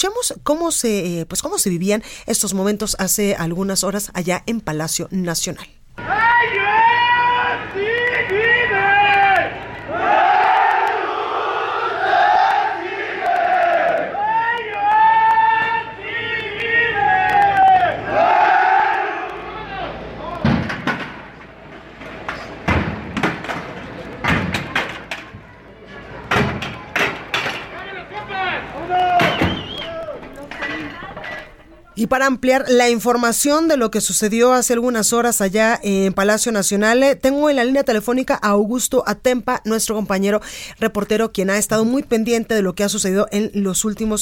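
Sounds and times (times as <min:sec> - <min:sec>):
speech: 0:00.0 - 0:07.0, 0:32.0 - 0:44.2
protesting students shouting: 0:06.0 - 0:20.6, 0:27.5 - 0:30.3
door being forced: 0:20.3 - 0:28.0, 0:28.7 - 0:31.5.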